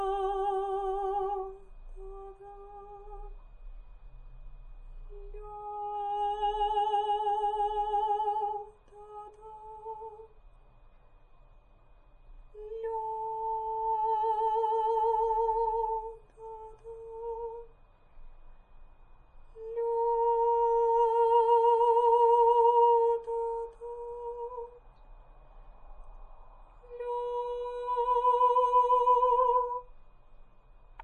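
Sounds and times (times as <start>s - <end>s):
person singing without piano: 0.0s - 3.3s, 5.1s - 10.3s, 12.6s - 17.7s, 19.6s - 24.8s, 26.8s - 29.9s.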